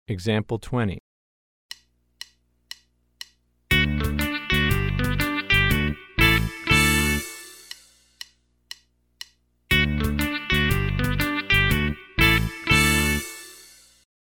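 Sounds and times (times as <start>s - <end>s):
country rock music: 3.7s - 7.6s, 9.7s - 13.5s.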